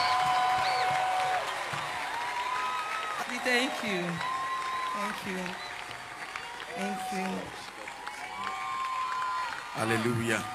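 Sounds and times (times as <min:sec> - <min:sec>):
clapping: 0:00.0 - 0:10.5
speech: 0:03.4 - 0:04.3, 0:05.0 - 0:05.7, 0:06.8 - 0:07.6, 0:09.8 - 0:10.5.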